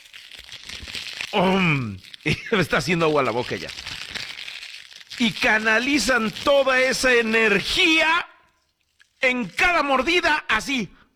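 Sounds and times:
plastic snack bag crinkling as it is grabbed and opened: 0:00.0 - 0:09.8
speech: 0:01.3 - 0:04.0, 0:05.2 - 0:08.3, 0:09.2 - 0:11.0.

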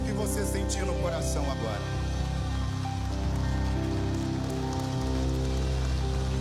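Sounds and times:
speech: 0:00.1 - 0:02.0
audience applause: 0:01.3 - 0:06.3.

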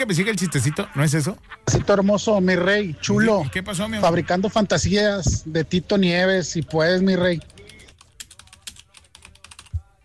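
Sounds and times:
speech: 0:00.0 - 0:07.5
fingers typing on a computer keyboard: 0:06.3 - 0:10.0.

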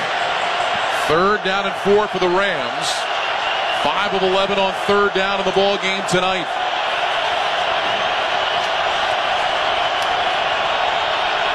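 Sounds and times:
stadium crowd roaring: 0:00.0 - 0:11.5
speech: 0:01.1 - 0:03.1, 0:03.8 - 0:06.6.

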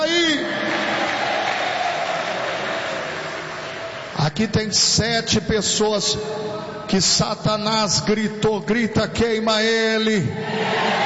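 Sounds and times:
audience applauding: 0:00.4 - 0:04.2
speech: 0:04.4 - 0:11.0.

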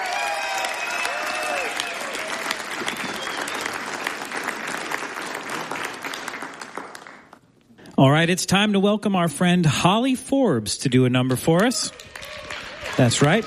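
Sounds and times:
audience cheering: 0:00.0 - 0:04.3, 0:11.8 - 0:13.4
applause from a live music-show audience for a performer: 0:00.0 - 0:07.4, 0:11.9 - 0:13.4
speech: 0:08.0 - 0:12.0, 0:13.0 - 0:13.4.

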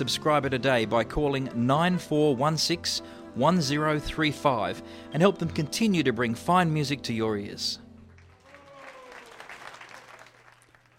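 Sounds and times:
speech: 0:00.0 - 0:07.8
warm applause: 0:07.9 - 0:10.9.

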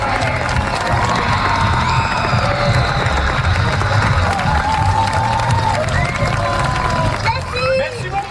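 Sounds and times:
children's audience cheering and shouting at a show: 0:00.0 - 0:07.9
children's high-pitched squeals and whoops: 0:01.0 - 0:07.0.

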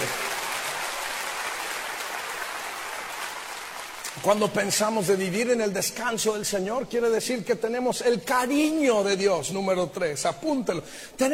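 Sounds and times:
audience applause: 0:00.0 - 0:04.5
speech: 0:04.2 - 0:11.3.

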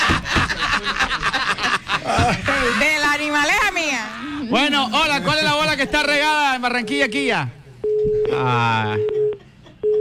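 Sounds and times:
laughter: 0:00.0 - 0:06.3
speech: 0:02.2 - 0:09.3
telephone busy tone after a dropped call: 0:07.8 - 0:09.9.

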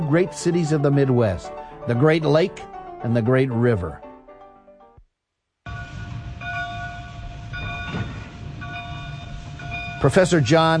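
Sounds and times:
speech: 0:00.1 - 0:04.0, 0:10.0 - 0:10.7
harmonic tone: 0:05.7 - 0:10.2
train passing on railroad: 0:05.7 - 0:10.7.

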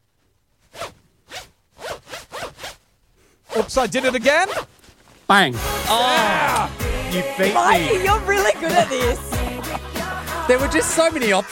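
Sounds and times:
clothing zipper zipping: 0:00.6 - 0:04.9
speech: 0:03.6 - 0:04.6, 0:05.3 - 0:09.3, 0:10.5 - 0:11.4
laughter: 0:05.9 - 0:11.0.

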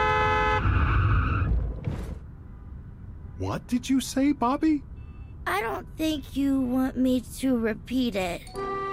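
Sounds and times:
car horn blast: 0:00.0 - 0:00.9
tires skidding: 0:00.4 - 0:02.3
speech: 0:03.4 - 0:04.9, 0:05.5 - 0:08.8.

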